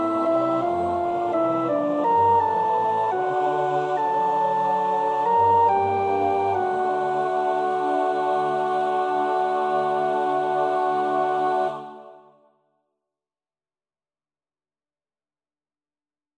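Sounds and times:
soprano practising a choir part: 0.0s - 12.5s.

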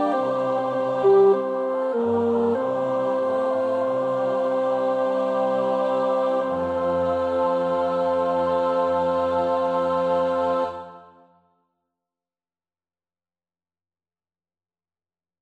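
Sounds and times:
tenor singing choir part practice: 0.0s - 11.4s.

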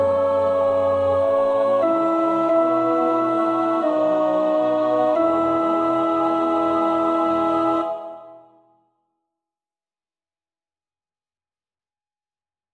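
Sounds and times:
alto voice singing choir part for practice: 0.0s - 8.6s.

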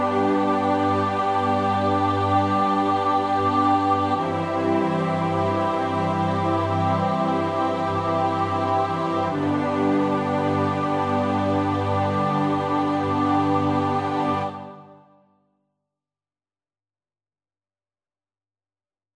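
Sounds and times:
SATB choir part practice: 0.0s - 15.2s.

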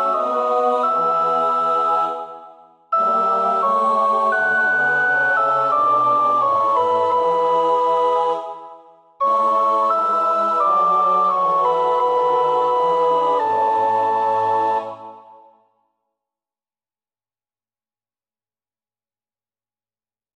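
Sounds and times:
soprano choir part singing: 0.0s - 15.6s.

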